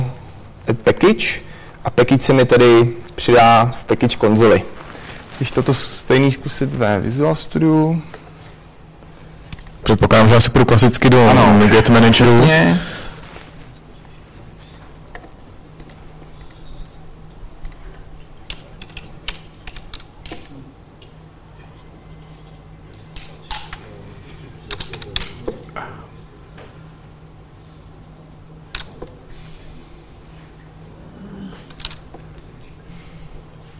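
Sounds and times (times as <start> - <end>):
low steady hum: 0.0 - 33.7
speech: 0.9 - 4.7, 5.4 - 8.1, 9.9 - 12.9
computer keyboard typing: 17.6 - 20.4.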